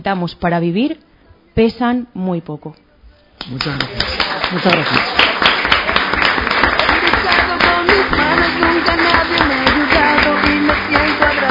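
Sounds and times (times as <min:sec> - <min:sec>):
speech: 0:00.0 - 0:02.8, 0:03.4 - 0:05.1
audience applause: 0:03.5 - 0:11.4.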